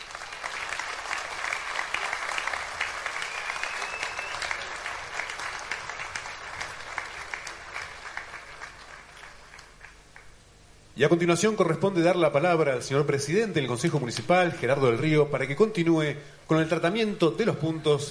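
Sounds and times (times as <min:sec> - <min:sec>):
audience applause: 0:00.0 - 0:10.4
speech: 0:11.0 - 0:18.0.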